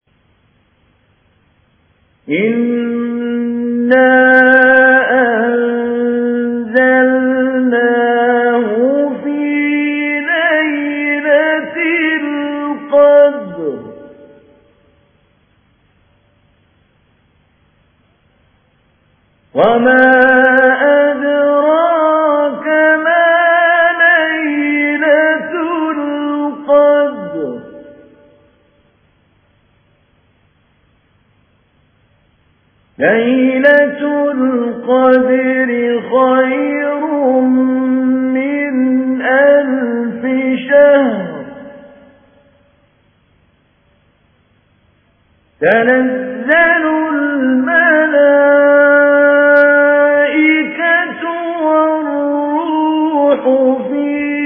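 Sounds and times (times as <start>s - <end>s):
mujawwad Quran recitation: 2.3s - 14.6s, 19.5s - 28.3s, 33.0s - 42.1s, 45.6s - 54.4s.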